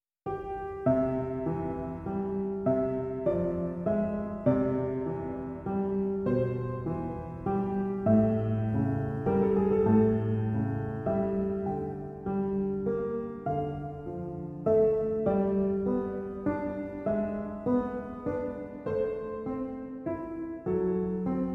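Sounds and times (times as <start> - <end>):
piano: 0.2 - 21.5.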